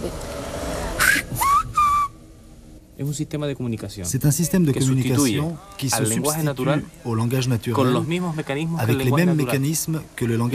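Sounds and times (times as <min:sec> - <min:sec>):
brief murmur: 0:00.7 - 0:02.1
human whistle rendering a word in Silbo Gomero: 0:01.0 - 0:02.2
speech: 0:03.0 - 0:10.5.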